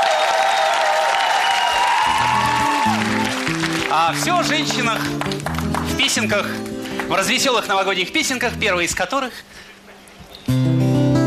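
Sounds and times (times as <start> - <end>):
audience applause: 0.0 - 7.5
speech: 4.0 - 9.7.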